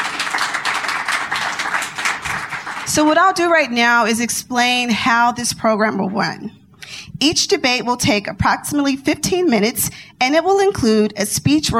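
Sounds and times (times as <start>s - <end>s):
audience applause: 0.0s - 2.9s
speech: 2.9s - 6.6s, 7.2s - 11.7s.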